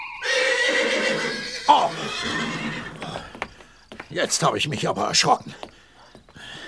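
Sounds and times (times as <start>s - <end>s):
several horses whinnying loudly: 0.2s - 3.7s
speech: 4.1s - 5.7s.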